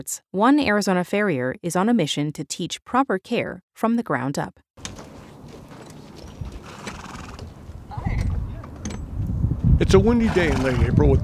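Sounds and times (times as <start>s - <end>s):
speech: 0.0s - 4.6s, 9.8s - 11.2s
horses moving around, hooves clip-clopping: 4.8s - 9.7s
low rumbling background: 5.2s - 11.2s.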